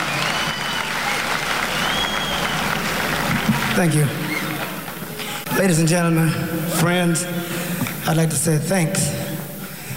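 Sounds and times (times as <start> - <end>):
audience applause for the band: 0.0 - 5.4
speech: 3.8 - 4.2, 5.6 - 9.2.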